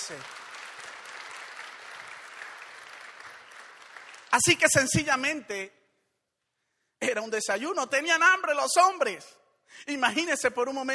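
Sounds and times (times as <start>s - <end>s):
audience applauding: 0.0s - 4.8s
speech: 0.1s - 0.4s, 4.3s - 5.8s, 7.0s - 10.9s.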